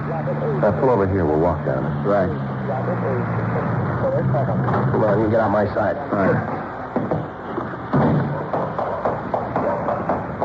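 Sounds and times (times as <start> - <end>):
speech: 0.2 - 7.3
locked door being pushed and jiggled: 6.5 - 10.4.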